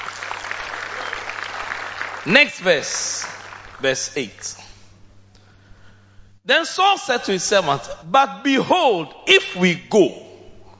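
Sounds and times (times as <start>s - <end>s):
crowd applauding: 0.0s - 3.9s
speech: 2.2s - 4.6s, 6.4s - 10.2s.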